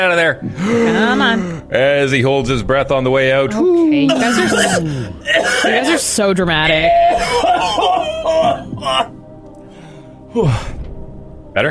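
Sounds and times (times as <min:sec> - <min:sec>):
speech: 0:00.0 - 0:09.2, 0:10.3 - 0:10.8
harsh cough: 0:04.1 - 0:06.0, 0:07.2 - 0:09.1.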